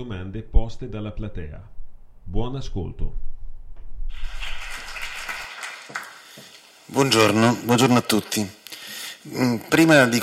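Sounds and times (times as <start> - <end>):
speech: 0.0 - 3.3, 5.9 - 8.6, 9.2 - 10.2
audience clapping: 4.1 - 7.4.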